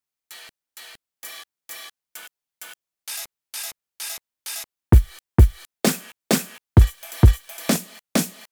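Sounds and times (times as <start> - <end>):
dive break slices: 5.0 - 8.4.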